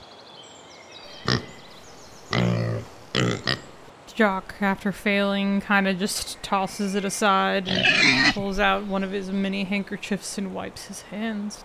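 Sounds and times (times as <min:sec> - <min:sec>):
low steady hiss: 0:00.0 - 0:11.6
pig grunting and snorting while eating greedily: 0:01.2 - 0:01.7, 0:02.3 - 0:03.8, 0:07.6 - 0:08.5
speech: 0:04.2 - 0:11.6.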